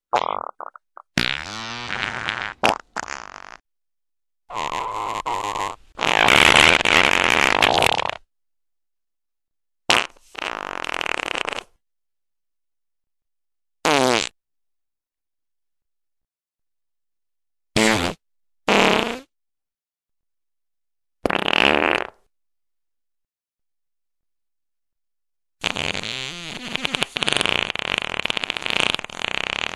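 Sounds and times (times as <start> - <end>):
loud farts: 0.1 - 3.6, 4.5 - 8.3, 9.9 - 11.8, 13.8 - 14.4, 17.8 - 19.3, 21.2 - 22.3, 25.6 - 29.7.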